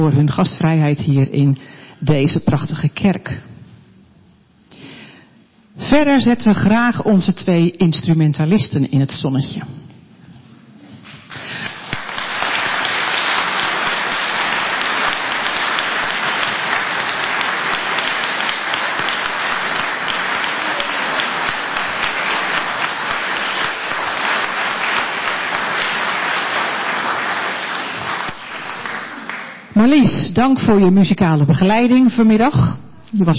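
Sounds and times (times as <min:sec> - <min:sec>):
speech: 0:00.0 - 0:03.5, 0:05.8 - 0:09.8, 0:29.9 - 0:33.3
audience applause in a church: 0:11.3 - 0:29.7.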